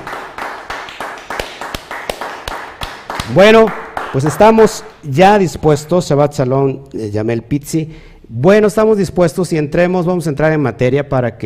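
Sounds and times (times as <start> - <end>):
rhythmic clapping: 0.0 - 5.0
speech: 3.3 - 11.4.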